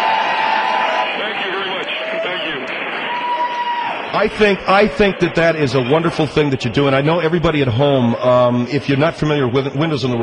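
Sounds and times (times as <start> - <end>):
audience applause: 0.0 - 6.9
speech: 4.2 - 10.2.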